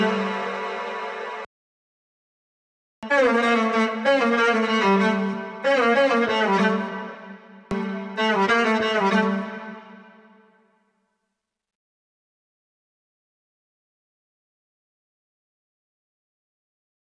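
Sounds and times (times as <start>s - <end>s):
solo violin: 0.0s - 1.5s, 3.0s - 10.4s.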